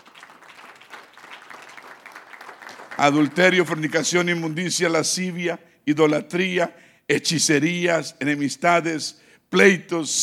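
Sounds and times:
group applauding: 0.0s - 4.4s
speech: 3.0s - 10.2s.

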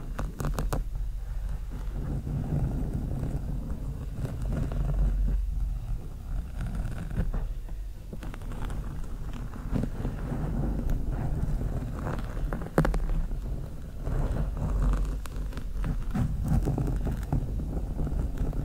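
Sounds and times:
long nails slowly scratching a microphone: 0.0s - 18.6s.

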